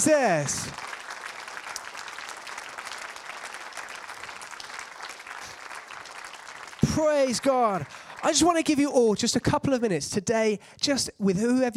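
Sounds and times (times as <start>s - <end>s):
speech: 0.0s - 0.8s, 7.0s - 11.7s
large group clapping: 0.0s - 9.0s.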